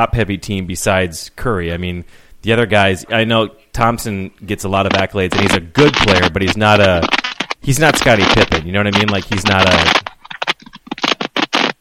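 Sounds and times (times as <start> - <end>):
speech: 0.0 - 10.0
keyboard typing: 4.9 - 11.7.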